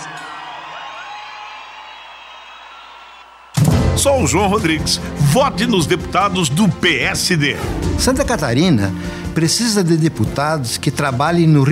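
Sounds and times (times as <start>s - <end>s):
audience applause and cheering: 0.0s - 5.7s
speech: 4.0s - 11.7s.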